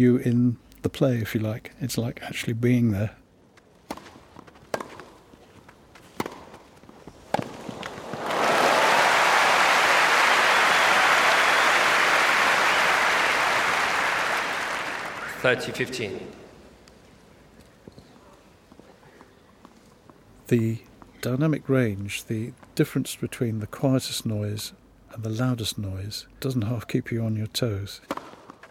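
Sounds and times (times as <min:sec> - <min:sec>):
speech: 0:00.0 - 0:03.2, 0:15.4 - 0:16.4, 0:20.5 - 0:28.7
crowd cheering and applauding at a match: 0:07.9 - 0:15.7.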